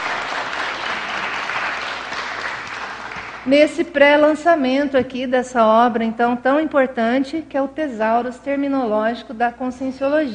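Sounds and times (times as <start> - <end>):
crowd applause: 0.0 - 3.5
speech: 3.4 - 10.3.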